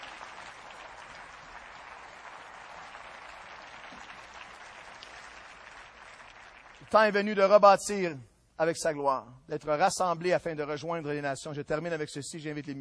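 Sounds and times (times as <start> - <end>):
audience applauding: 0.0 - 7.2
speech: 6.9 - 12.7.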